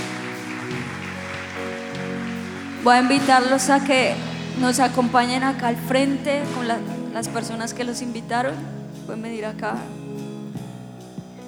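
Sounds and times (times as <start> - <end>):
strong applause: 0.0 - 7.4
speech: 2.8 - 10.0.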